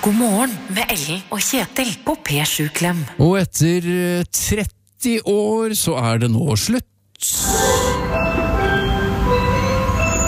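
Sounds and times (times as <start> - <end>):
speech: 0.0 - 8.0
ice cream van jingle: 7.5 - 10.2.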